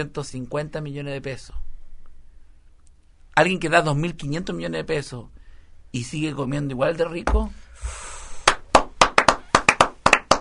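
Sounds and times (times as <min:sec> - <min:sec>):
speech: 0:00.0 - 0:01.6, 0:03.4 - 0:08.0
faint hiss: 0:00.0 - 0:08.8
audience clapping: 0:08.4 - 0:10.4.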